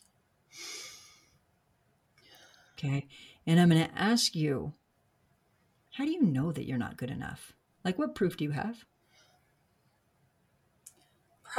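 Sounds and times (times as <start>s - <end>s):
person exhaling during a guided breathing exercise: 0.5s - 1.4s
speech: 2.8s - 4.8s, 6.0s - 8.9s.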